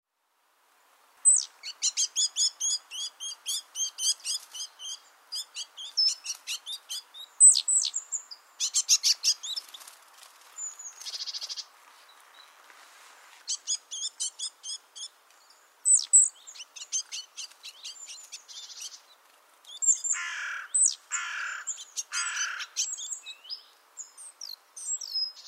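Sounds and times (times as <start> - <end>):
great tit calling: 1.2 - 9.7, 13.5 - 15.1, 15.8 - 19.1, 19.7 - 25.4.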